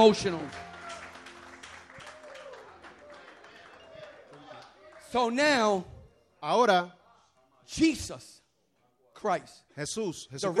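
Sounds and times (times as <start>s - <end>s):
speech: 0.0s - 0.7s, 5.1s - 7.0s, 7.7s - 8.4s, 9.2s - 10.5s
audience applauding: 0.0s - 5.6s.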